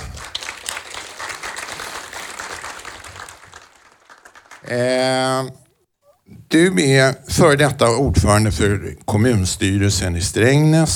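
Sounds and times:
crowd applauding: 0:00.0 - 0:05.1
speech: 0:04.7 - 0:05.6, 0:06.5 - 0:10.9.

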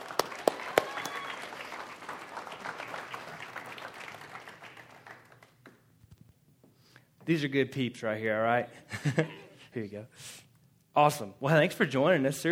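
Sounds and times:
audience applauding to welcome guests: 0:00.0 - 0:06.2
speech: 0:07.3 - 0:10.4, 0:11.0 - 0:12.5.

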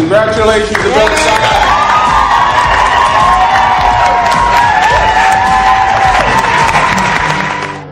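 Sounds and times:
speech: 0:00.1 - 0:01.6
legislators cheering and applauding: 0:00.5 - 0:07.9
whoops: 0:01.1 - 0:07.7.

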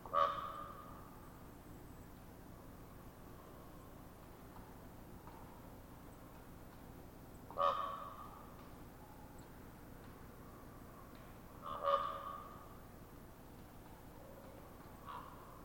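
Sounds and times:
common raven hollow popping notes: 0:00.1 - 0:01.0, 0:07.5 - 0:08.8, 0:11.0 - 0:12.9, 0:13.8 - 0:15.6.

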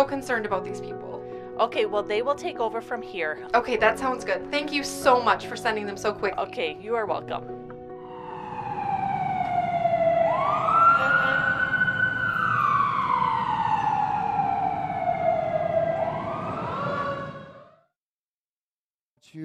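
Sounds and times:
speech: 0:00.0 - 0:07.6
emergency vehicle siren: 0:07.9 - 0:18.0.

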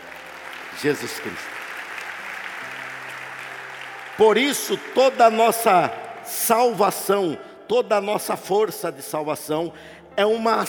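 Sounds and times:
audience applause: 0:00.0 - 0:06.8
speech: 0:00.8 - 0:01.7, 0:04.2 - 0:10.6.

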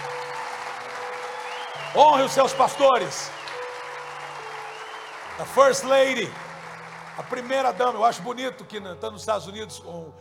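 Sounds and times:
audience applause: 0:00.0 - 0:08.7
speech: 0:01.9 - 0:03.4, 0:05.4 - 0:06.4, 0:07.2 - 0:10.1.

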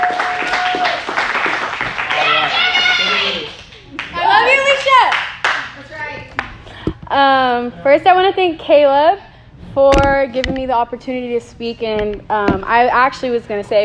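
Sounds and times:
audience applause: 0:00.0 - 0:04.9
speech: 0:07.2 - 0:09.2, 0:09.8 - 0:13.8.

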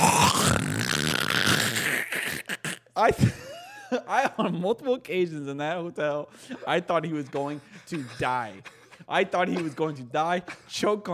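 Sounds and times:
imitation of loud snoring: 0:00.0 - 0:02.9
speech: 0:03.0 - 0:11.1.

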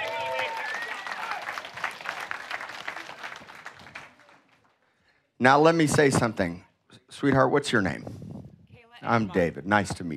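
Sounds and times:
audience applause: 0:00.0 - 0:04.8
speech: 0:05.4 - 0:08.2, 0:09.0 - 0:10.1.

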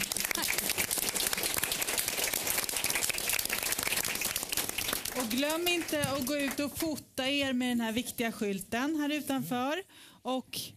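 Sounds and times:
warm audience applause: 0:00.0 - 0:06.6
speech: 0:05.3 - 0:10.7.

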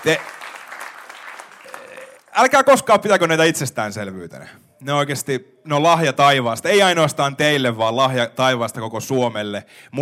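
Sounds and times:
speech: 0:00.0 - 0:00.3, 0:02.4 - 0:10.0
audience applause: 0:00.0 - 0:02.3.

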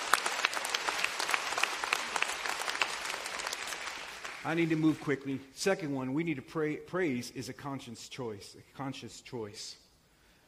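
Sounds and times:
audience clapping: 0:00.0 - 0:05.4
speech: 0:04.4 - 0:09.8.

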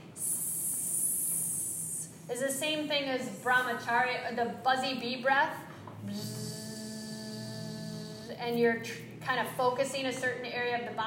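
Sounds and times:
person imitating a snake's hiss: 0:00.2 - 0:02.1
speech: 0:02.3 - 0:06.4, 0:08.4 - 0:11.0.

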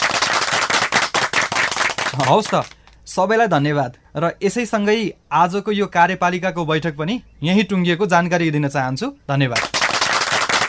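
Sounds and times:
council members and elected representatives clapping at a municipal executive council meeting: 0:00.0 - 0:03.0, 0:09.5 - 0:10.6
speech: 0:02.2 - 0:09.7.

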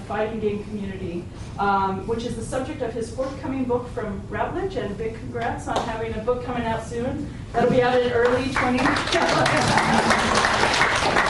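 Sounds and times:
speech: 0:00.1 - 0:11.2
audience clapping: 0:08.2 - 0:11.2
laughter: 0:09.1 - 0:11.2.

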